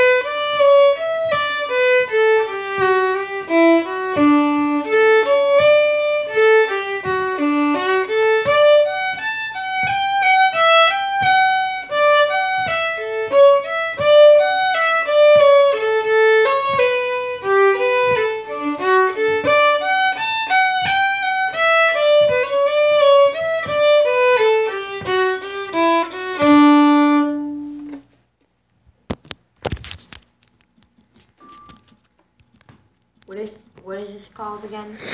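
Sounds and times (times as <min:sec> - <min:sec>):
fiddle: 0:00.0 - 0:28.1.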